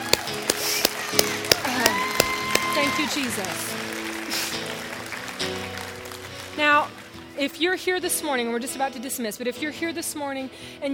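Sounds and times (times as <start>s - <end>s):
church congregation rhythmic hand-clapping applauding the Lord: 0.0s - 7.1s
speech: 3.0s - 3.9s, 6.6s - 10.9s.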